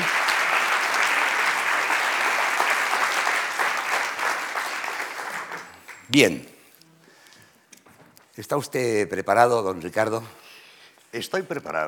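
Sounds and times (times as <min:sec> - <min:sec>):
audience applause: 0:00.0 - 0:06.1
speech: 0:06.1 - 0:06.5, 0:08.4 - 0:10.4, 0:11.1 - 0:11.8.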